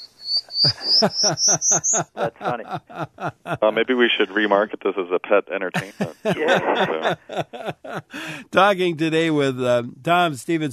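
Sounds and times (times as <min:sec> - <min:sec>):
prairie warbler song recording: 0:00.0 - 0:02.2
laughter: 0:00.5 - 0:04.9, 0:05.7 - 0:08.5
speech: 0:00.6 - 0:10.7.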